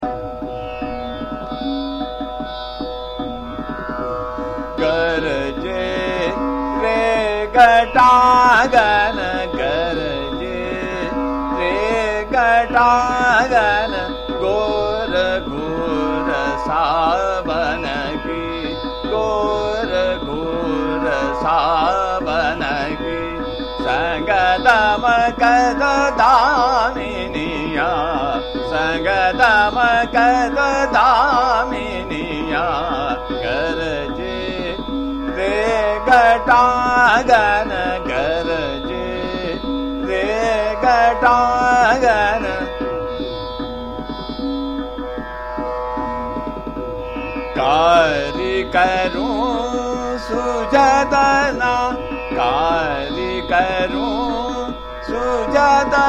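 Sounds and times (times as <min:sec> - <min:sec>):
Hindustani chota khyal in fast ektaal: 0:03.6 - 0:56.0.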